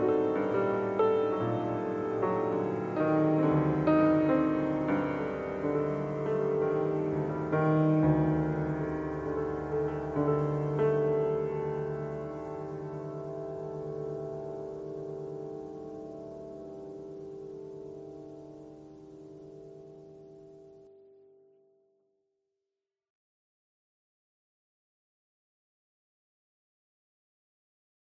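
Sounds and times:
piano noise: 0.0 - 21.4.

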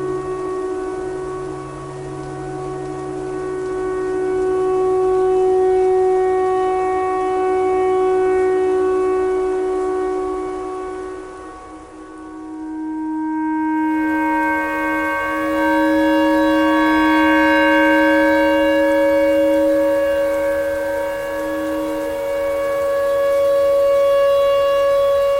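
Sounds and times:
clarinet playing a pentatonic tornado siren line: 0.0 - 25.3.

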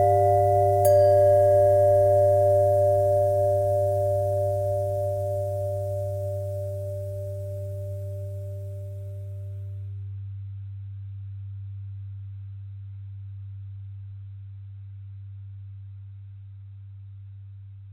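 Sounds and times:
bell: 0.0 - 9.6.

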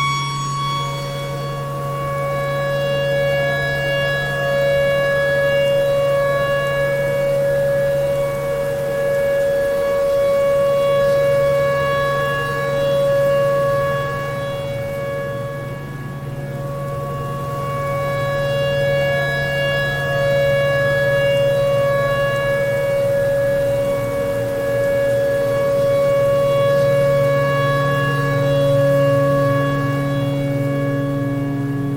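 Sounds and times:
tornado siren: 0.0 - 31.9.

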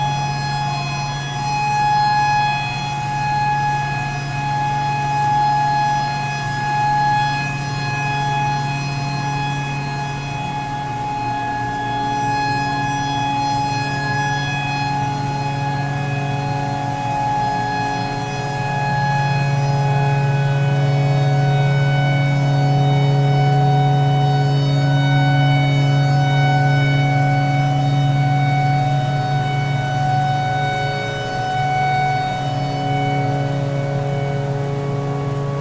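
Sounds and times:
tornado siren: 0.0 - 35.6.

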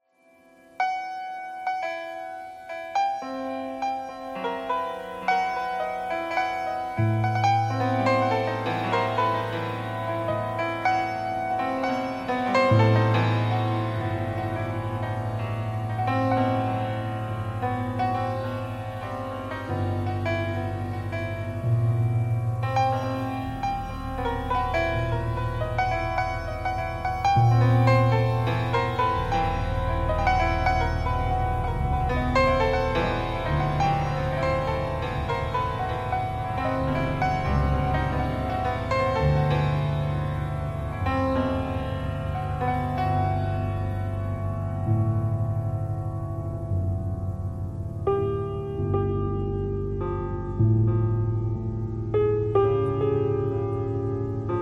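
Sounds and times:
piano thread noise: 0.1 - 54.6.

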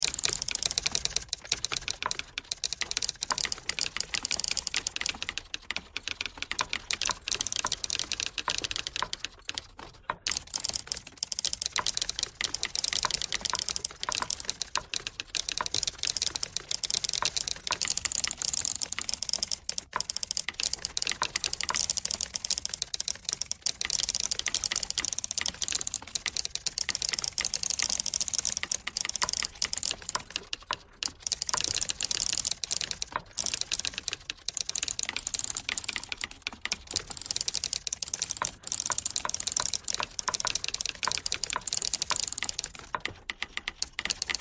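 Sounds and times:
typewriter: 0.0 - 44.3.

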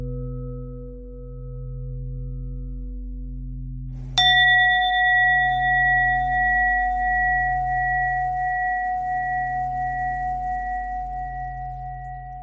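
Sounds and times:
bell threads: 4.2 - 12.4.

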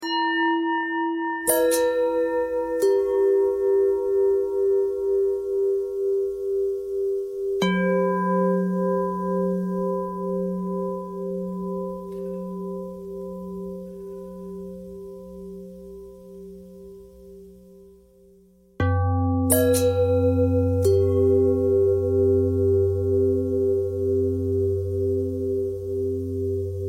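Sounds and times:
long pentatonic bell thread: 0.0 - 17.6, 18.8 - 26.8.

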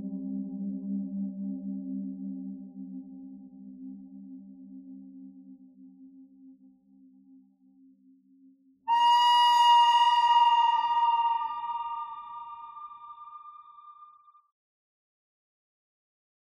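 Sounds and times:
pentatonic bird melody: 8.9 - 14.0.

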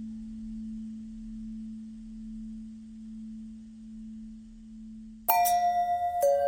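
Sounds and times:
long bell tone bending: 5.3 - 6.4.

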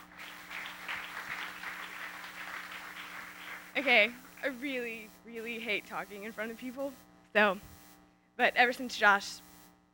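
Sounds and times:
audience clapping: 0.0 - 4.5
speech: 3.8 - 7.7, 8.4 - 9.5.

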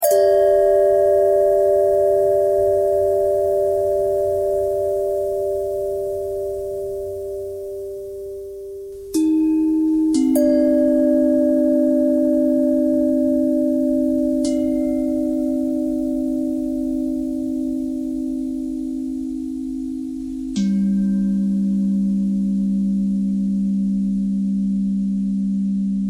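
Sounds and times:
bell: 0.0 - 26.0.

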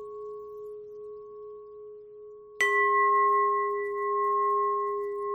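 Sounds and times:
long bell ringing: 2.6 - 5.3.

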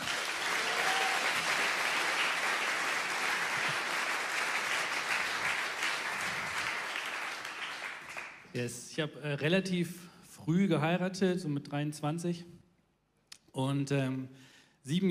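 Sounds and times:
audience applause: 0.0 - 8.5
speech: 8.6 - 12.6, 13.6 - 15.0.

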